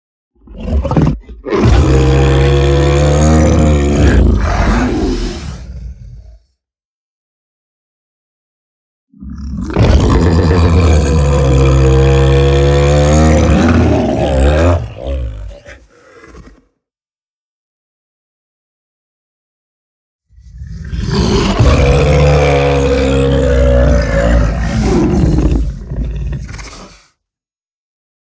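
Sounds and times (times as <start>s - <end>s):
bear scream roaring: 0.4s - 6.5s, 9.2s - 16.7s, 20.4s - 27.1s.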